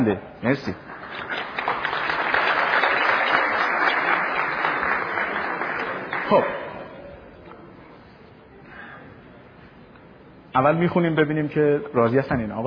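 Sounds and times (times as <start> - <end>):
speech: 0.0 - 1.4, 6.3 - 6.6, 10.6 - 12.6
wedding guests clapping for bride and groom: 0.8 - 6.9.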